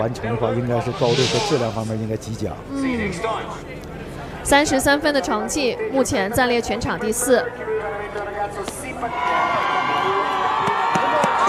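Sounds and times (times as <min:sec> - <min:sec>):
speech: 0:00.0 - 0:09.6
crowd cheering in a sports venue: 0:09.1 - 0:11.4.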